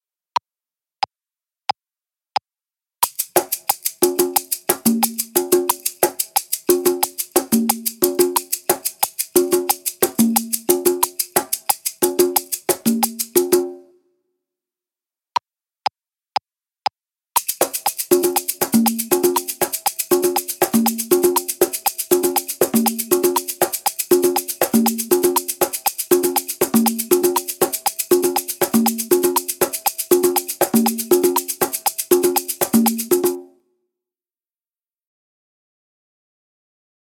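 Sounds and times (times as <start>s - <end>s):
shaker: 3.0s - 13.8s, 17.4s - 33.5s
congas: 3.0s - 13.9s, 17.4s - 33.5s.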